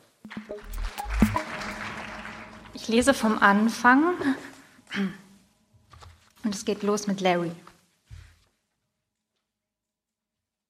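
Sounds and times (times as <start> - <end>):
audience applause: 0.3 - 3.8
speech: 2.9 - 5.2, 6.4 - 7.7.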